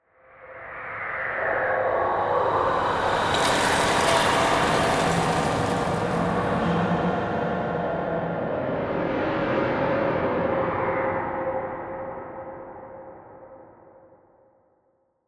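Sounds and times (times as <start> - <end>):
ghostly haunting horror sound: 0.5 - 12.4.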